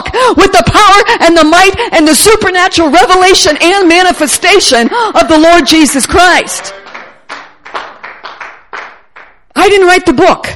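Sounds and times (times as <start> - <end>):
speech: 0.2 - 6.9, 9.6 - 10.5
scattered handclaps from a church congregation during a sermon: 6.5 - 9.5.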